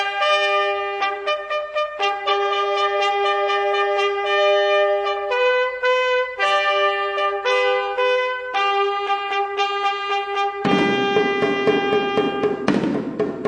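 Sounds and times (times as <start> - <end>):
trumpet among medieval instruments: 0.0 - 13.3.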